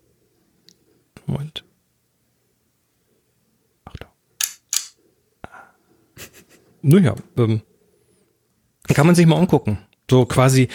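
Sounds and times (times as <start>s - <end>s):
Brownie Hawkeye camera shutter clicks: 4.4s - 5.0s
speech: 6.8s - 7.7s, 9.0s - 10.7s.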